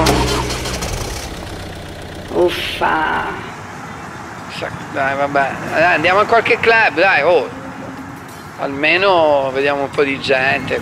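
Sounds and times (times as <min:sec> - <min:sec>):
car engine running: 0:00.0 - 0:06.3
speech: 0:02.5 - 0:03.5, 0:04.6 - 0:07.6, 0:08.6 - 0:10.7.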